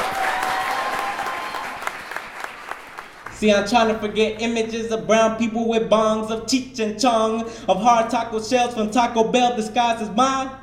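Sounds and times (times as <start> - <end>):
audience applause: 0.0 - 3.4
speech: 3.4 - 10.6.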